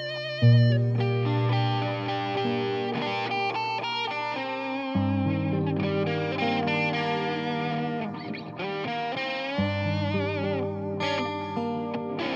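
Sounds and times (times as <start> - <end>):
sad guitar improvisation in G minor: 0.0 - 12.3.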